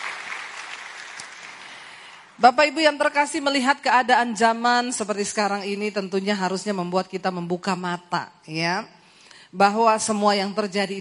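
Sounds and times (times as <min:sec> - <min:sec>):
audience applause: 0:00.0 - 0:02.2
speech: 0:02.4 - 0:11.0.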